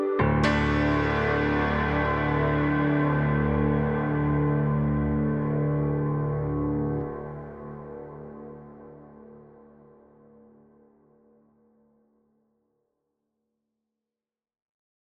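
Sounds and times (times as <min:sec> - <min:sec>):
electric piano tine montage: 0:00.0 - 0:07.7.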